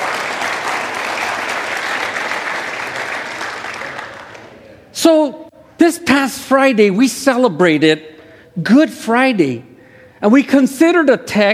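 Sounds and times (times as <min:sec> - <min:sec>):
audience applause: 0:00.0 - 0:04.6
speech: 0:05.0 - 0:11.5.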